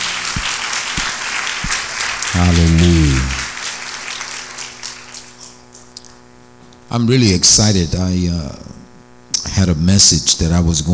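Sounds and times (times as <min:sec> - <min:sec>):
audience clapping hands: 0:00.0 - 0:06.2
speech: 0:02.4 - 0:03.4, 0:06.9 - 0:08.7, 0:09.6 - 0:10.9.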